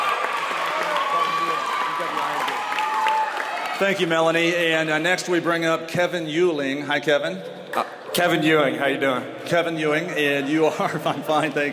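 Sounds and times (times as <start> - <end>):
audience applause: 0.0 - 4.3
speech: 3.8 - 11.7.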